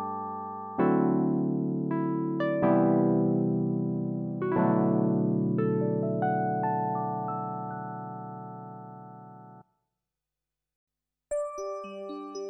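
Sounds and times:
Kawai ES7 electric piano: 0.0 - 9.6.

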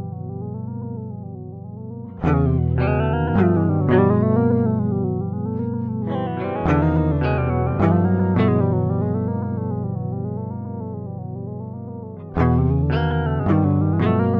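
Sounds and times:
Electro Harmonix Mod 11 pitch modulation effect: 2.2 - 14.2.

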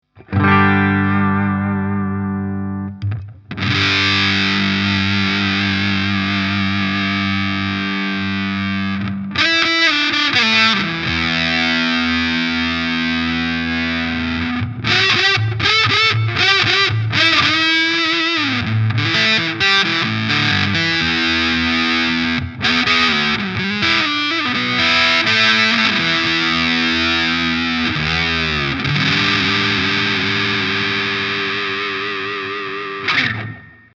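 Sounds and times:
Big Muff sustain tone: 0.1 - 33.9.

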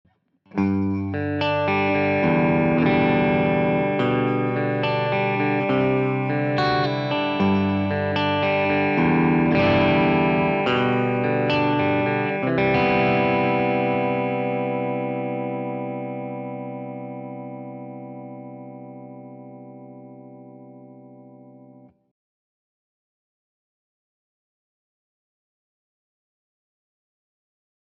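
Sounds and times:
Schecter SLS Elite electric guitar on neck and bridge pickups: 0.5 - 22.0.

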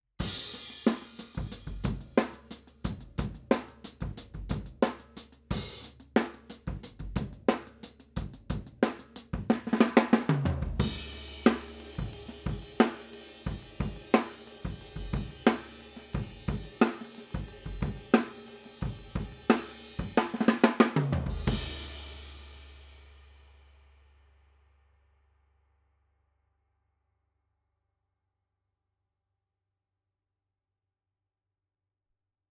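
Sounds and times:
overhead cymbals: 0.2 - 23.6.

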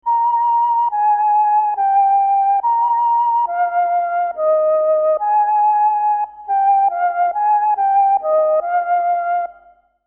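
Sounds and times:
flute: 0.0 - 10.0.

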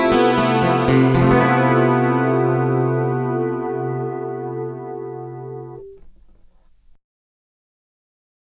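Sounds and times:
Corona chorus preset: 0.0 - 6.5.

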